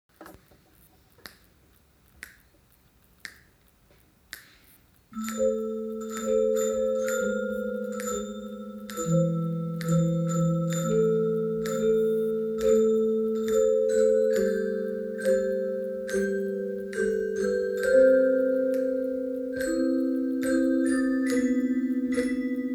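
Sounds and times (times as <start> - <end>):
metallophone: 5.1 - 22.7.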